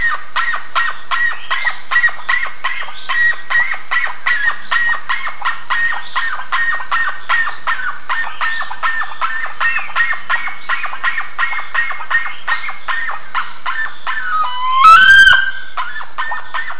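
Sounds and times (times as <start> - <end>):
birds rasping chirps: 0.0 - 16.7.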